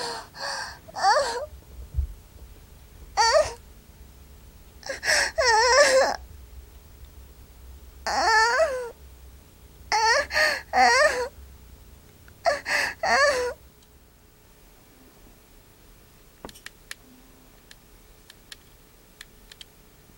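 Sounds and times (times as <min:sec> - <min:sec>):
young woman moaning: 0:00.0 - 0:01.5, 0:03.2 - 0:03.6, 0:04.8 - 0:06.3, 0:08.1 - 0:09.0, 0:09.9 - 0:11.4, 0:12.4 - 0:13.6.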